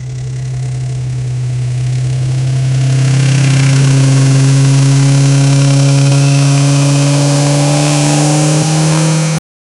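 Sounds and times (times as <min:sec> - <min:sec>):
600 motorcycle accelerating at high revs: 0:00.0 - 0:09.4.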